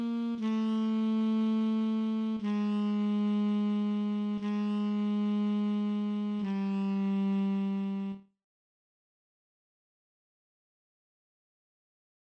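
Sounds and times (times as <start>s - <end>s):
alto saxophone chorale and recessional: 0.0s - 8.2s.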